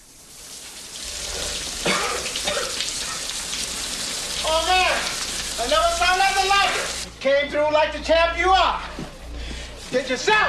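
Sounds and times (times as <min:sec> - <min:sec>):
sharper splashing bursts: 0:00.0 - 0:07.1
shower running water: 0:00.0 - 0:07.2
speech: 0:07.2 - 0:09.0, 0:09.9 - 0:10.4.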